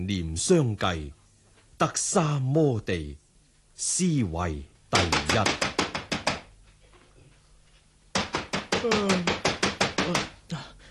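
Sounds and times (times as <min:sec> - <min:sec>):
speech: 0:00.0 - 0:01.2, 0:01.8 - 0:03.2, 0:03.8 - 0:05.7, 0:08.8 - 0:09.4
knocking on a door at night: 0:05.0 - 0:06.5, 0:08.1 - 0:10.4.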